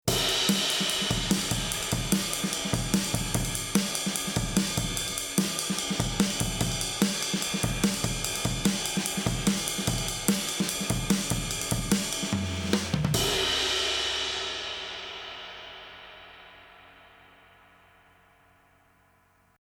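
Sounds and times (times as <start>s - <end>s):
drum overheads through Cameleon Labs 7721 compressor: 0.0s - 16.4s.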